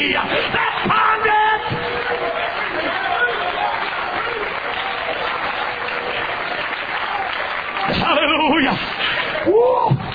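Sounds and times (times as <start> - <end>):
audience applauding: 0.2 - 10.1.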